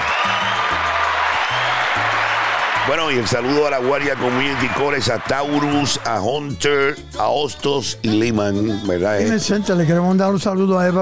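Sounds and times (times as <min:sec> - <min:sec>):
applause: 0:00.0 - 0:06.4
speech: 0:02.9 - 0:11.0.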